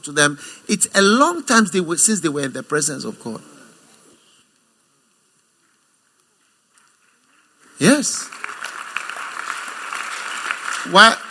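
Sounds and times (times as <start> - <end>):
speech: 0.0 - 3.6, 7.8 - 8.4, 10.8 - 11.2
audience clapping: 6.7 - 11.3.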